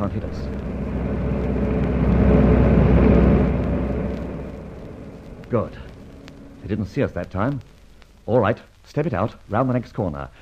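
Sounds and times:
speech: 0.0 - 0.6, 5.5 - 5.9, 6.6 - 10.4
car driving past: 0.0 - 7.8.

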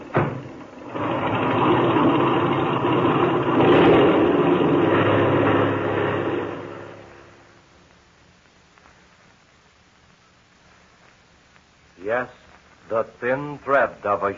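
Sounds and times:
airplane engine revving for takeoff: 0.7 - 7.5
speech: 13.2 - 14.3.

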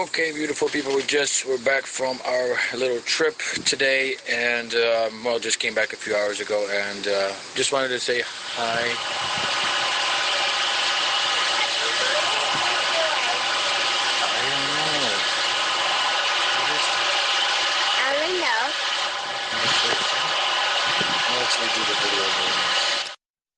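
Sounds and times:
speech: 0.0 - 9.7
loud strange buzzing before the Virginia earthquake: 8.3 - 23.1.

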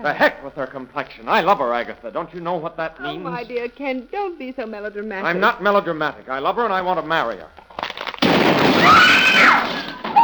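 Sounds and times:
speech: 0.0 - 7.6
glass object exploding and bursting into flames: 7.8 - 10.2.

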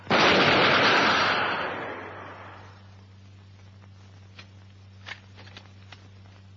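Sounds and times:
massed gunfire volley fired on command: 0.1 - 2.7.

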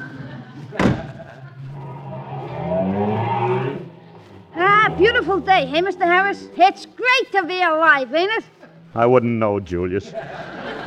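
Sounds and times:
laughter: 0.0 - 2.3, 10.0 - 10.8
delivery truck engine starting and driving off: 0.6 - 6.7
delivery truck door slamming shut: 0.8 - 1.2
speech: 5.0 - 10.8.

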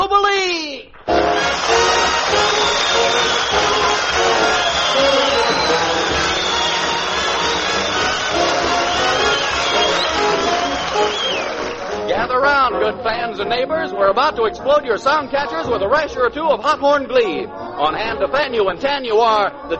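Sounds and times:
audience clapping and cheering: 0.9 - 13.0
speech: 12.9 - 19.7.

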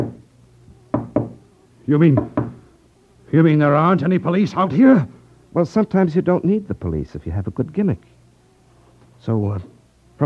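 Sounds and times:
knocks from wooden spirit-rapping box: 0.9 - 1.4, 2.2 - 2.6
speech: 1.9 - 2.4, 3.3 - 8.1, 9.2 - 10.2.

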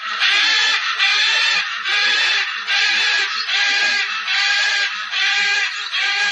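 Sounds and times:
macaw screeching: 0.0 - 6.2.

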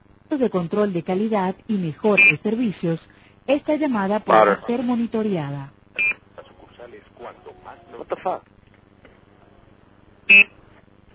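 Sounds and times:
speech: 0.3 - 6.1, 6.9 - 8.5, 10.3 - 10.6
short high-pitched electronic beep on a phone line: 10.3 - 10.5.

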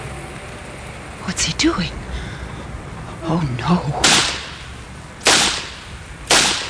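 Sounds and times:
speech: 1.4 - 2.0, 3.2 - 4.3
gunshots: 4.0 - 4.6, 5.2 - 6.6.

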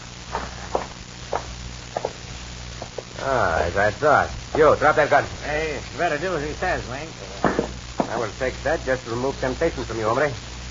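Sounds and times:
footsteps walking into a cabin: 0.2 - 3.2
speech: 3.2 - 10.5.

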